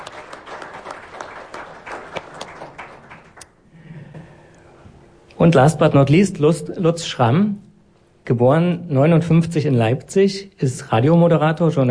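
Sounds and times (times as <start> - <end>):
audience applause: 0.0 - 3.6
speech: 5.4 - 7.6, 8.3 - 11.8.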